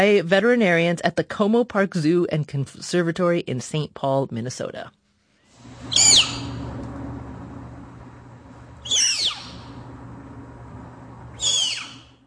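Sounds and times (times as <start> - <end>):
speech: 0.0 - 5.0
low hum: 0.0 - 12.2
snow leopard cub squeaking while being weighed: 5.9 - 6.5, 8.8 - 9.7, 11.4 - 12.1.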